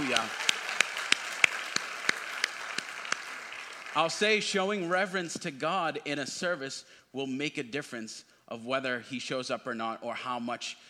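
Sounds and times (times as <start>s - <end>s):
audience hand clapping: 0.0s - 5.3s
speech: 0.2s - 0.4s, 4.0s - 10.8s.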